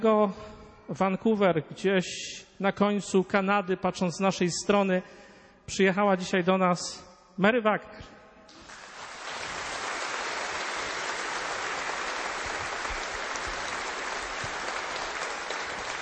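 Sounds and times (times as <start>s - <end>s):
speech: 0.0s - 8.1s
audience applause: 8.5s - 16.0s.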